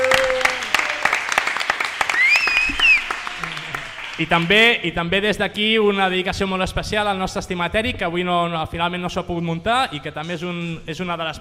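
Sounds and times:
crowd audience applause: 0:00.0 - 0:04.6
speech: 0:04.2 - 0:11.3.

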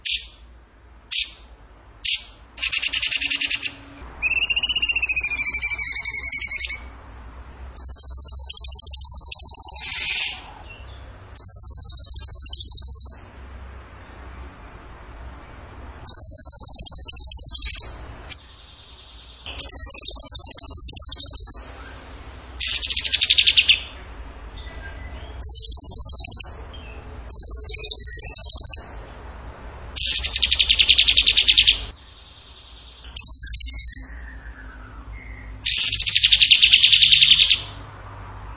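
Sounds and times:
bird rapid high-pitched pulsed trill: 0:00.0 - 0:00.4, 0:01.1 - 0:07.0, 0:07.8 - 0:13.4, 0:16.0 - 0:22.0, 0:22.6 - 0:24.0, 0:25.3 - 0:26.7, 0:27.3 - 0:29.0, 0:30.0 - 0:37.8.

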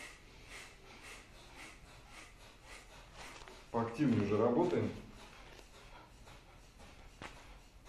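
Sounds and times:
forceful nasal exhalations in kapalabhati breathing: 0:00.0 - 0:03.7
speech: 0:03.9 - 0:05.1.

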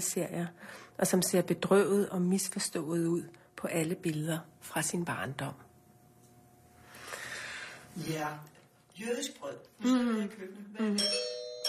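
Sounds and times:
speech: 0:00.0 - 0:05.7, 0:08.0 - 0:11.3
doorbell ringing: 0:11.0 - 0:11.6.

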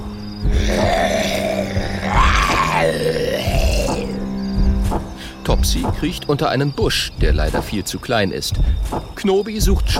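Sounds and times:
angry growl: 0:00.6 - 0:04.2
speech: 0:05.5 - 0:09.9.

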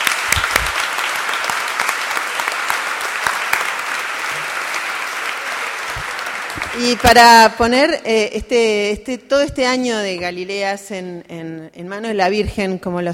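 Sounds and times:
audience applauding: 0:00.0 - 0:07.5
speech: 0:06.8 - 0:13.1.

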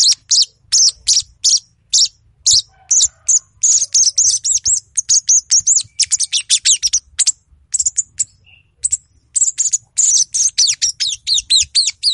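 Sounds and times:
Little Spiderhunter song with high rapid chips and buzzy notes: 0:00.0 - 0:12.1.

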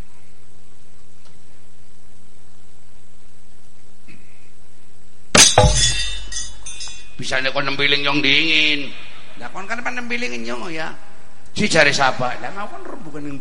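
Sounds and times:
glass breaking: 0:05.4 - 0:07.2
speech: 0:07.2 - 0:13.3.

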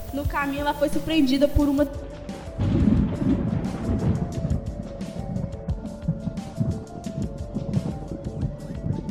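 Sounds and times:
speech: 0:00.3 - 0:02.0
thunderstorm with rolling thunder: 0:02.5 - 0:09.1.

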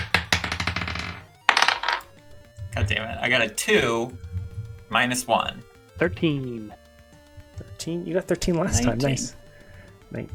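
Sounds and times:
dice rolled for initiative in a tabletop role-playing game: 0:00.0 - 0:02.2
speech: 0:02.8 - 0:04.3, 0:04.9 - 0:06.8, 0:07.8 - 0:09.4, 0:10.1 - 0:10.3.

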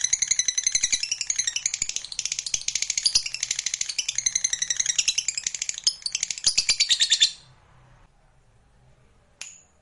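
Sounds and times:
lovebird chirping song: 0:00.0 - 0:07.5.

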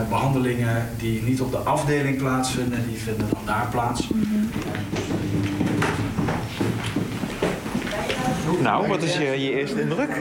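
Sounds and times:
speech: 0:00.0 - 0:05.3, 0:08.5 - 0:10.1
low murmuring hum: 0:00.0 - 0:10.1
footsteps in a long clinic corridor in Oostrum: 0:02.9 - 0:08.8.

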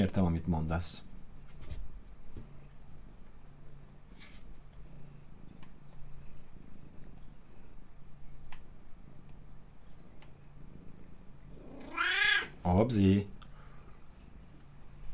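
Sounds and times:
speech: 0:00.0 - 0:01.1, 0:12.6 - 0:13.4
soft clicks and rustles: 0:01.4 - 0:10.6, 0:14.1 - 0:15.1
cat purring: 0:04.6 - 0:12.7
cat meowing: 0:11.6 - 0:12.6.

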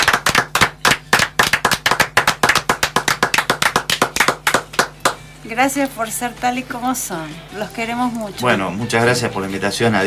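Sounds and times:
audience applauding at a book and song presentation: 0:00.0 - 0:05.2
speech: 0:05.5 - 0:10.0.

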